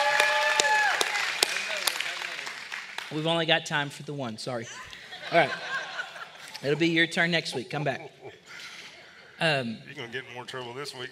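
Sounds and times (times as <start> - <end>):
voices cheering: 0.0 - 2.3
crowd clapping: 0.0 - 3.3
speech: 3.1 - 5.7, 6.6 - 8.3, 9.4 - 11.1
laughter: 4.7 - 9.2.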